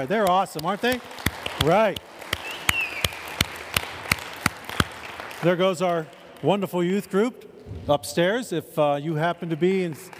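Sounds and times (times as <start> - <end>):
speech: 0.0 - 2.1, 5.4 - 10.1
round of applause for the worship team: 0.0 - 6.5, 9.4 - 10.1.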